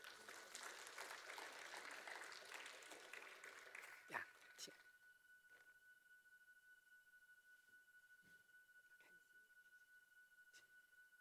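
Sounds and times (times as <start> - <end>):
audience applause welcoming a speaker: 0.0 - 4.6.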